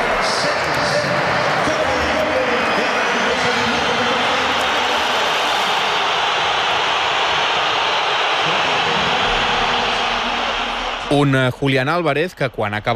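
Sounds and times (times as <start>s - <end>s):
football crowd booing a substituted player: 0.0s - 12.1s
speech: 11.1s - 12.9s.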